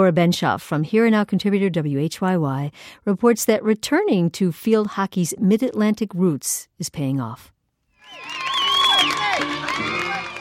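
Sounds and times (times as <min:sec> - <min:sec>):
speech: 0:00.0 - 0:07.5
spectators cheering at field hockey game: 0:08.0 - 0:10.3.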